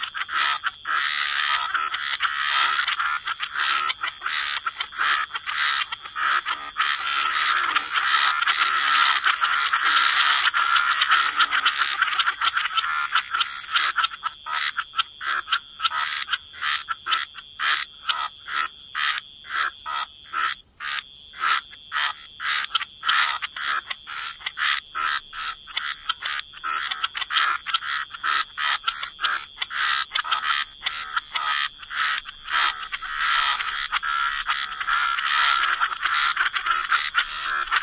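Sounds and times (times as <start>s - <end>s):
frogs croaking: 0.0s - 37.8s.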